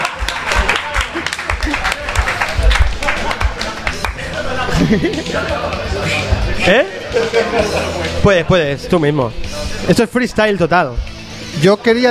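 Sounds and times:
audience applause: 0.0s - 4.4s
laughter: 0.0s - 8.2s
speech: 4.9s - 12.1s.

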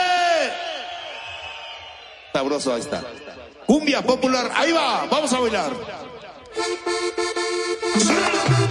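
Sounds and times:
crowd shouting a cheer: 0.0s - 3.9s
speech: 2.4s - 8.6s.

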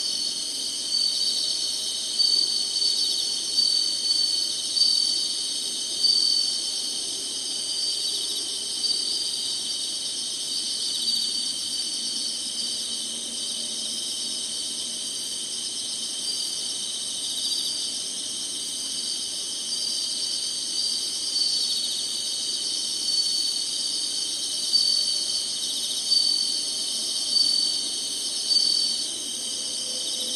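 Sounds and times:
insect chorus of high shrill buzzing: 0.0s - 30.3s.

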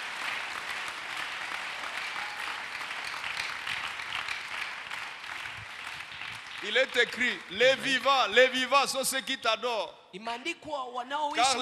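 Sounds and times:
congregation applauding during a church service: 0.0s - 9.0s
speech: 6.6s - 11.5s.

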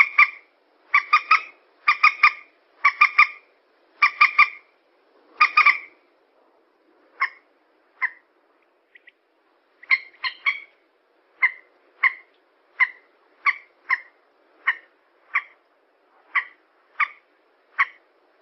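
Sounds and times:
Yellow-vented bulbul calls: 0.0s - 4.7s, 5.4s - 6.0s, 9.8s - 10.8s, 11.4s - 15.6s, 16.3s - 18.0s.

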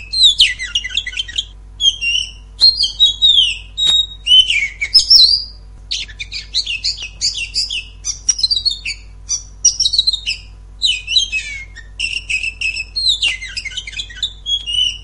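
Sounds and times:
Oriental magpie-robin scratchy song: 0.0s - 15.0s.

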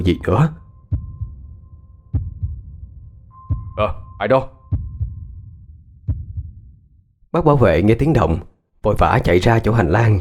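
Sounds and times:
speech: 0.0s - 0.6s, 3.8s - 4.6s, 7.3s - 10.1s
pounding heartbeat: 0.6s - 7.1s.

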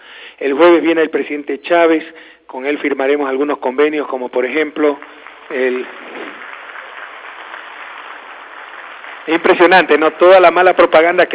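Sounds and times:
speech: 0.4s - 6.2s, 9.3s - 11.3s
audience applause at a political gathering: 4.7s - 10.8s.

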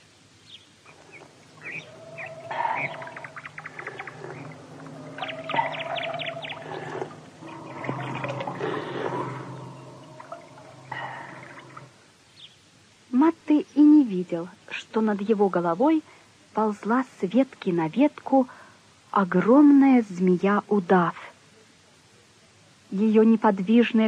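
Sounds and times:
high chirps and whistling calls: 0.4s - 12.6s
clean spring water flowing: 0.9s - 12.1s
speech: 14.1s - 21.2s, 22.9s - 24.0s.

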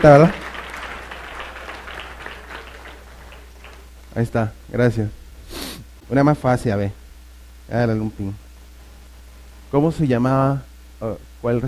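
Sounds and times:
speech: 0.0s - 0.4s, 4.2s - 5.2s, 6.1s - 7.0s, 7.7s - 8.4s, 9.7s - 11.6s
audience applause: 0.0s - 4.2s.

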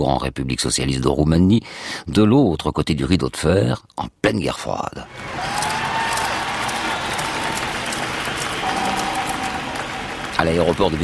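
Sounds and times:
speech: 0.0s - 5.6s, 10.4s - 11.0s
large crowd clapping and cheering: 5.1s - 11.0s
thin sustained cry or whistle: 8.4s - 10.0s.

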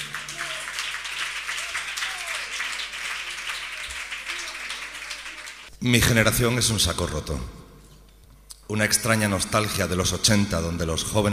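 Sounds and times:
audience applause: 0.0s - 5.7s
speech: 5.8s - 7.6s, 8.7s - 11.3s.

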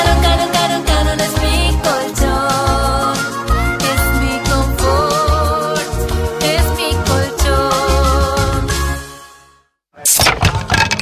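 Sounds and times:
upbeat music: 0.0s - 9.0s
debris rattling: 10.1s - 11.0s
table edge breaking off: 10.1s - 11.0s.

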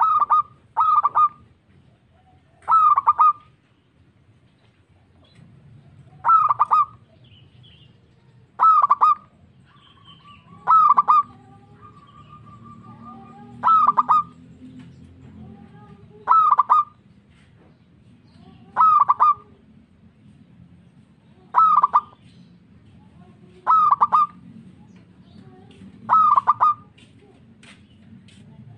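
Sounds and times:
local-type zebra dove cooing: 0.0s - 3.6s, 5.8s - 7.1s, 8.6s - 14.4s, 15.8s - 17.0s, 18.4s - 19.6s, 21.5s - 22.2s, 23.6s - 24.4s, 26.1s - 26.9s.

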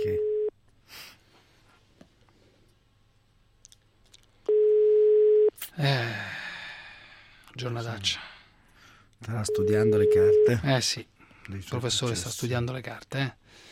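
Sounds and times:
phone line ringing tone of an unanswered call: 0.0s - 0.5s, 4.5s - 5.5s, 9.5s - 10.6s
speech: 5.8s - 6.2s, 7.6s - 8.3s, 9.2s - 13.7s.

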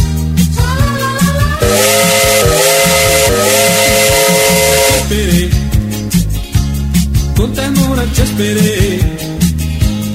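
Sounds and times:
thumping rhythmic music beat: 0.1s - 10.1s
steam train whistle: 1.6s - 5.2s.

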